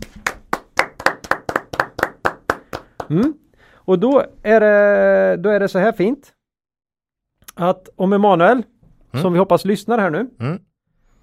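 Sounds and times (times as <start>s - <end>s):
applause: 0.0s - 3.4s
speech: 3.1s - 6.4s, 7.6s - 11.2s.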